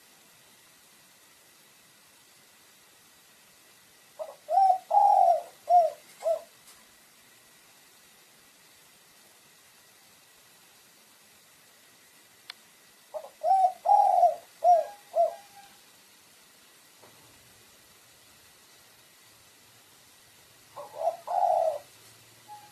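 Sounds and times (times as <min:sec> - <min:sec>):
pigeon giving low hollow coos: 0:04.2 - 0:06.6, 0:13.1 - 0:15.8, 0:20.7 - 0:21.9.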